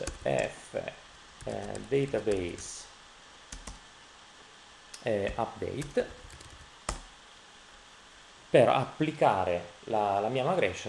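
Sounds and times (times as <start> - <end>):
speech: 0.2 - 2.9, 5.0 - 6.2, 8.5 - 10.8
computer keyboard clicks typing a command: 1.4 - 2.6, 3.5 - 3.8, 5.3 - 7.1.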